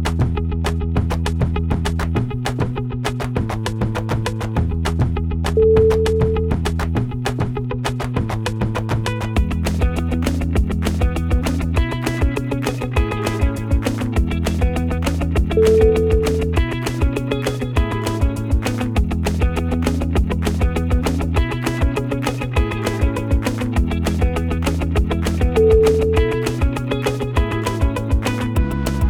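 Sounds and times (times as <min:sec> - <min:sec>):
upbeat corporate music: 0:00.0 - 0:29.0.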